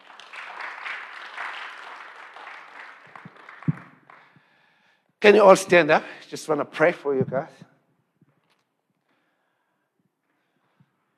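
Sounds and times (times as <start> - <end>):
church congregation applauding at a Sunday service: 0.0 - 4.7
speech: 5.2 - 7.7.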